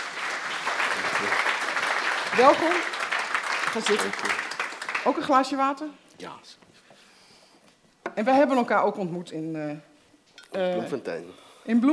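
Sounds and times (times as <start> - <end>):
audience applause: 0.0 - 5.4
speech: 2.4 - 3.0, 3.7 - 4.4, 5.0 - 6.6, 8.2 - 9.9, 10.5 - 11.9.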